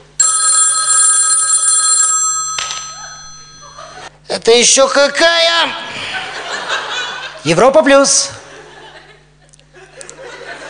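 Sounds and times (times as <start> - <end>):
telephone bell ringing: 0.2 - 4.1
laughter: 3.0 - 4.2, 5.8 - 10.6
speech: 4.4 - 6.0, 7.4 - 8.4.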